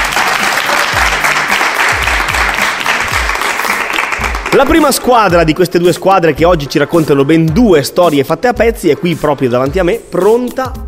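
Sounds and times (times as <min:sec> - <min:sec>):
studio applause from a group: 0:00.0 - 0:05.1
speech: 0:04.6 - 0:10.8.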